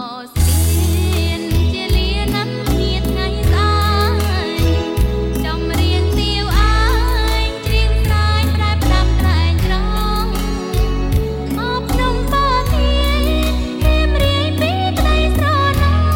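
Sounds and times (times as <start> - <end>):
Khmer song: 0.0 - 16.1.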